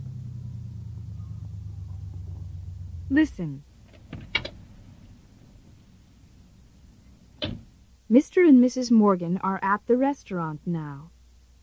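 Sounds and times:
car driving: 0:00.0 - 0:08.0
speech: 0:03.1 - 0:03.7, 0:08.1 - 0:11.1.

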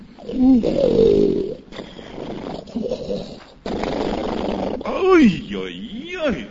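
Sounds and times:
person snoring loudly like a roaring lion: 0:00.2 - 0:05.0
speech: 0:00.4 - 0:01.0.

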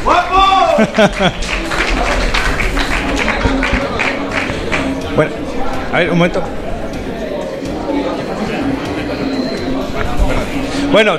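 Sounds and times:
laughter: 0:00.4 - 0:05.8, 0:06.5 - 0:10.9
audience applause: 0:00.7 - 0:05.1
speech: 0:00.8 - 0:01.6, 0:05.2 - 0:06.6, 0:10.9 - 0:11.1.

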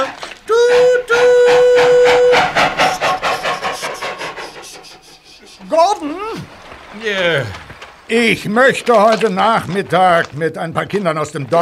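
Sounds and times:
steam locomotive sharp whistle blasts: 0:00.0 - 0:04.0
steam locomotive chuffing off: 0:00.0 - 0:10.2
speech: 0:07.1 - 0:11.6.

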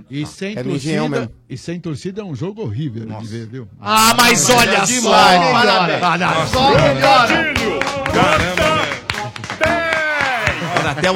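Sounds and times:
speech: 0:00.1 - 0:08.9, 0:10.9 - 0:11.1
laughter: 0:04.5 - 0:11.1
people outside applauding: 0:06.2 - 0:11.1.

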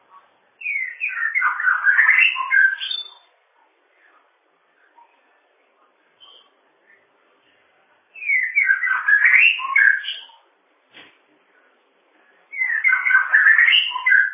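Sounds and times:
bird whistling song: 0:00.6 - 0:03.3, 0:08.2 - 0:10.4, 0:12.5 - 0:14.3.

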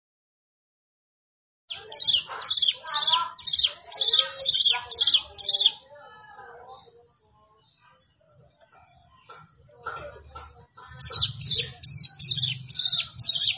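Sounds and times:
plain prinia singing: 0:01.7 - 0:06.0, 0:10.9 - 0:13.5.

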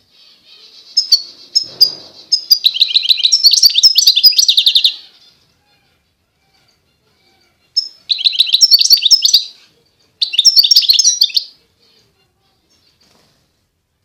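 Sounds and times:
wild European goldfinch singing: 0:00.9 - 0:05.0, 0:07.8 - 0:09.5, 0:10.2 - 0:11.5.

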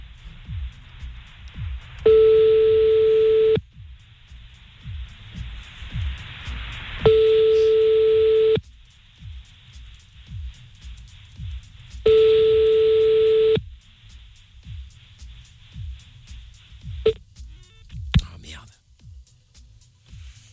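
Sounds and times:
hissy phone line with faint clicks: 0:02.0 - 0:03.7, 0:07.0 - 0:08.6, 0:12.0 - 0:13.6, 0:16.8 - 0:17.8
telephone ringback tones: 0:02.1 - 0:03.6, 0:07.1 - 0:08.6, 0:12.1 - 0:13.6.

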